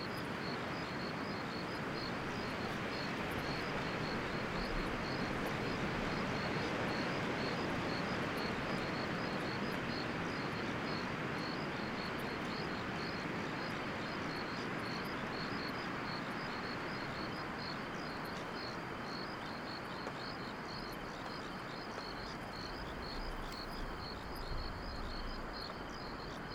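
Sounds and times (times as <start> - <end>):
insects chirping in long grass: 0.0 - 26.5.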